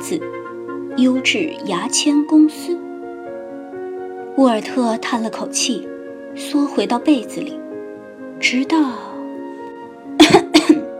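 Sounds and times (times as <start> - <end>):
speech: 0.1 - 0.4, 1.0 - 2.8, 4.4 - 7.6, 8.4 - 9.1
person coughing: 10.2 - 10.9.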